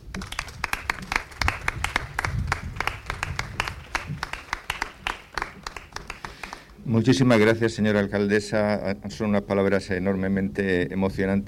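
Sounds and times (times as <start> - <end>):
applause: 0.0 - 6.8
speech: 6.9 - 11.4.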